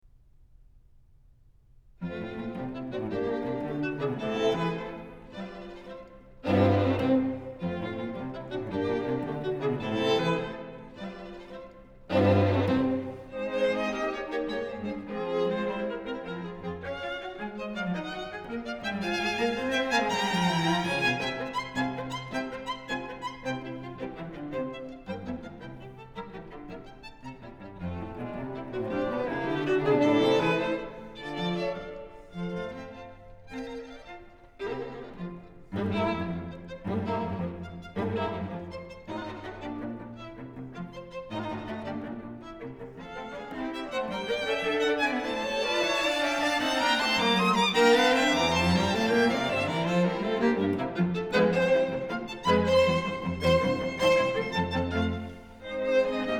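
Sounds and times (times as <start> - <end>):
string quartet playing scherzo in F major: 2.0 - 56.3.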